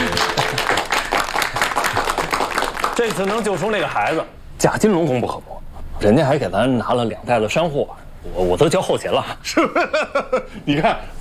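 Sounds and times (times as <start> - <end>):
group of colleagues applauding: 0.0 - 4.3
speech: 3.0 - 11.1.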